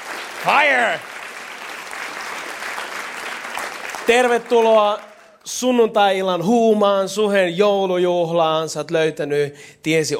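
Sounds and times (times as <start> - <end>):
audience applause for the band: 0.0 - 5.4
speech: 0.4 - 1.1, 4.1 - 10.1.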